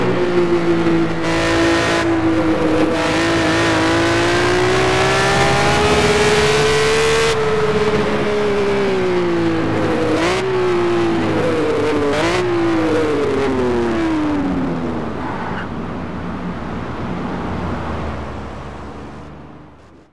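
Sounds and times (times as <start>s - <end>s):
Ferrari 330 P34 car engine: 0.0s - 20.1s.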